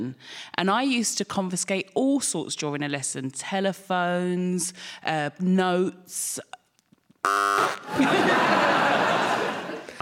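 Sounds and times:
speech: 0:00.0 - 0:06.6, 0:07.2 - 0:08.7
quiz game buzzer: 0:07.2 - 0:08.0
laughter: 0:07.8 - 0:10.0.

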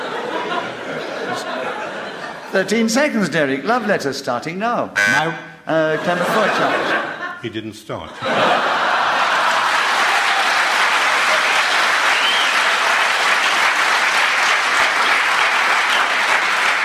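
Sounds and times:
laughter: 0:00.0 - 0:04.0, 0:05.7 - 0:12.4
speech: 0:02.5 - 0:08.6
audience applause: 0:08.4 - 0:16.8.

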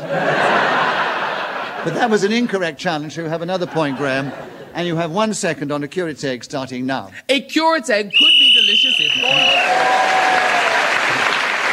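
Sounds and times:
laughter: 0:00.0 - 0:02.8, 0:03.4 - 0:05.1
speech: 0:01.8 - 0:10.7
game show whistle blown: 0:08.1 - 0:09.8
audience applause and cheering: 0:08.8 - 0:11.7.

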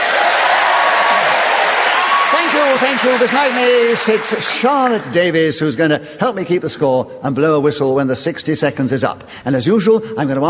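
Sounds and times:
audience cheers: 0:00.0 - 0:05.1
studio audience clapping for a game-show panel introduction: 0:00.0 - 0:05.8
speech: 0:02.6 - 0:10.4.

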